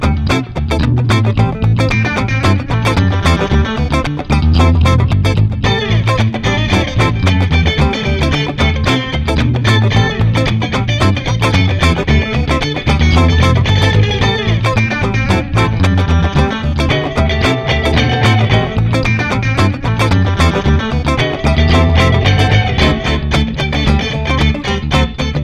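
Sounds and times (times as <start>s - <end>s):
funky guitar jam: 0.0s - 25.4s.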